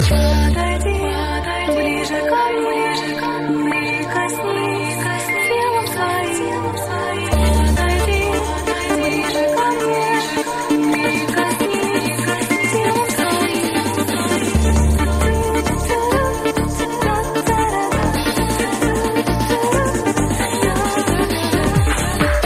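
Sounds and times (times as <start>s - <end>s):
Russian techno music: 0.0s - 22.4s.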